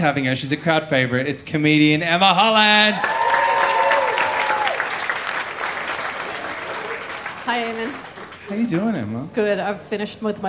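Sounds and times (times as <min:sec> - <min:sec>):
speech: 0:00.0 - 0:03.2, 0:07.6 - 0:10.4
audience applause: 0:02.7 - 0:09.0.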